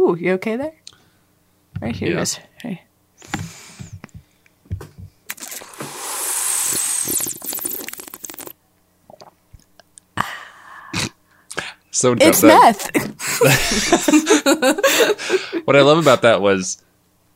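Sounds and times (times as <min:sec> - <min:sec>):
speech: 0:00.1 - 0:00.8, 0:01.8 - 0:03.5, 0:12.0 - 0:16.9
loud gulping of a drink: 0:05.3 - 0:08.5, 0:09.1 - 0:09.4
laughter: 0:13.2 - 0:15.6.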